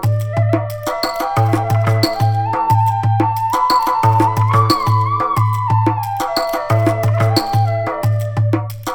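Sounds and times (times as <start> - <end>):
flute playing pentatonic scale: 0.1 - 8.8.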